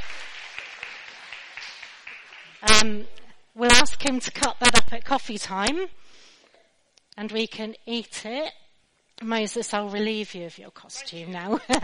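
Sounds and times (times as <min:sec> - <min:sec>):
round of applause: 0:00.0 - 0:02.8
speech: 0:02.8 - 0:03.1, 0:04.0 - 0:06.2, 0:07.2 - 0:08.6, 0:09.2 - 0:11.8.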